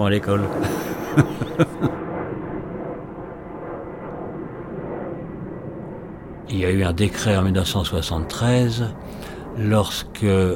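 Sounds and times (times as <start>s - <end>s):
speech: 0.0s - 1.8s, 6.5s - 10.5s
jet airplane roaring: 0.0s - 10.5s
laughter: 0.5s - 2.0s.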